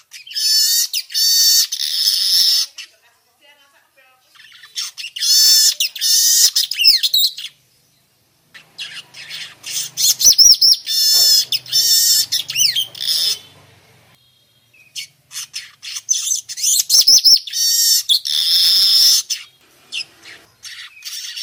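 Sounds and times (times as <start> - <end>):
young weaver singing harsh wheezy buzzing phrases in forest: 0.1 - 21.4.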